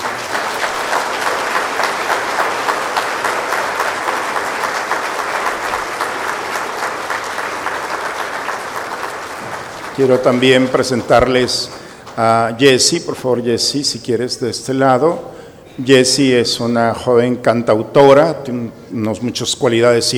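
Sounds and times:
audience applauding young pilgrims: 0:00.0 - 0:12.4
speech: 0:10.0 - 0:20.1.

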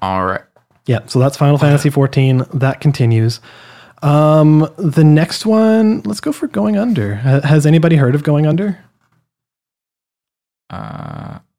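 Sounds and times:
speech: 0:00.0 - 0:08.9, 0:10.7 - 0:11.2
person yawning: 0:10.7 - 0:11.5.

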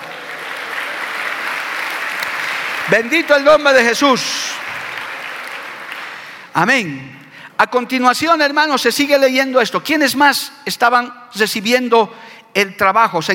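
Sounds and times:
audience applause: 0:00.0 - 0:06.5
speech: 0:02.9 - 0:04.6, 0:06.6 - 0:13.3.

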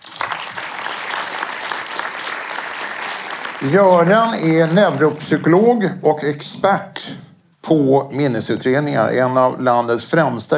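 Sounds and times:
audience applause: 0:00.0 - 0:05.8
speech: 0:03.6 - 0:10.5.

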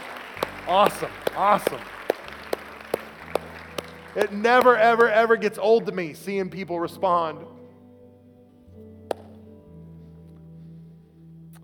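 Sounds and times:
hand claps: 0:00.0 - 0:05.4, 0:09.1 - 0:09.3
speech: 0:00.7 - 0:02.0, 0:04.2 - 0:07.6.

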